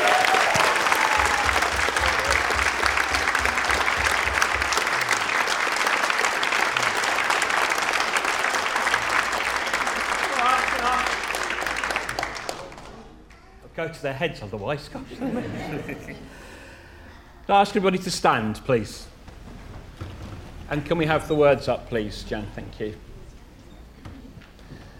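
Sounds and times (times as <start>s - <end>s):
audience applause: 0.0s - 13.3s
speech: 13.9s - 16.5s, 17.5s - 19.1s, 20.7s - 23.1s
laughter: 14.9s - 16.7s.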